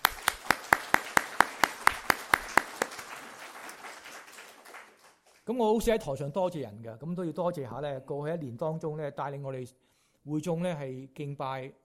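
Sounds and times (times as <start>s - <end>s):
audience applause: 0.0s - 5.4s
speech: 5.5s - 11.8s.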